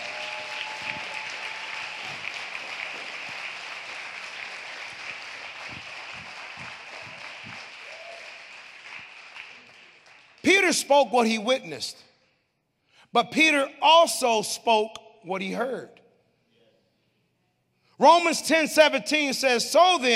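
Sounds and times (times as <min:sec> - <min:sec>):
audience clapping: 0:00.0 - 0:10.8
speech: 0:10.7 - 0:12.1, 0:13.2 - 0:16.0, 0:18.0 - 0:20.1.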